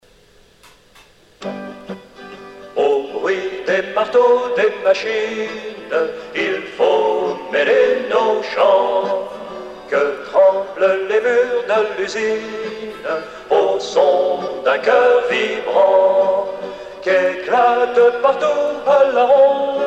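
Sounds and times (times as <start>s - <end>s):
song: 1.4s - 19.8s.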